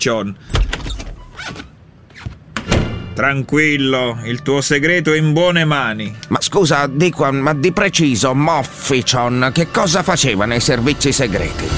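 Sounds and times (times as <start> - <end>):
speech: 0.0 - 0.6, 3.2 - 11.7
door being opened with clunks and rattling knocks: 0.5 - 3.2.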